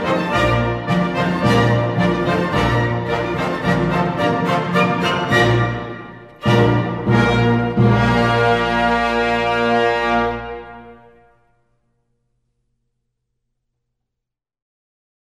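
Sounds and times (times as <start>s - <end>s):
polka in B flat major: 0.0s - 11.2s.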